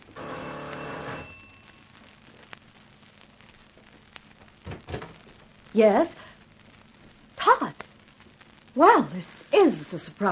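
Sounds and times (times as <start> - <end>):
doorbell ringing: 0.2 - 1.9
faint hiss: 1.4 - 10.3
speech: 5.8 - 6.3, 8.8 - 10.3.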